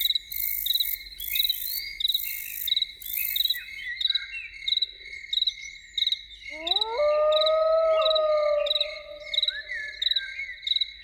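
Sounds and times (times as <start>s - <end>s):
crickets chirping: 0.0s - 5.4s, 6.5s - 10.9s
loon wailing: 6.5s - 10.2s.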